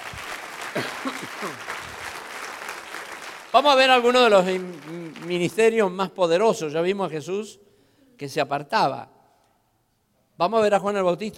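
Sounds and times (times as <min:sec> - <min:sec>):
audience applause: 0:00.0 - 0:05.8
speech: 0:00.7 - 0:01.7, 0:03.6 - 0:07.6, 0:08.2 - 0:09.2, 0:10.4 - 0:11.3.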